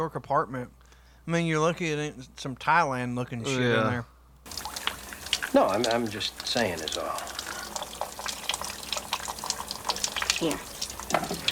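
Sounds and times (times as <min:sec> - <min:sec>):
speech: 0:00.0 - 0:04.6, 0:05.5 - 0:07.4, 0:10.4 - 0:10.7
water spraying from a sink sprayer in a shabby 1990s New York apartment: 0:04.5 - 0:11.4.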